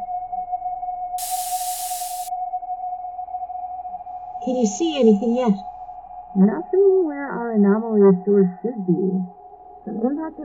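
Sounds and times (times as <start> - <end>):
short air jet thruster burst: 1.2 - 2.3
speech: 4.4 - 5.7, 6.4 - 10.4.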